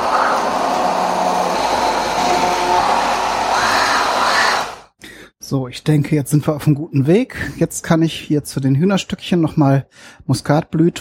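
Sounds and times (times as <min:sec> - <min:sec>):
blender grinding spices into paste: 0:00.0 - 0:04.7
speech: 0:05.5 - 0:11.0.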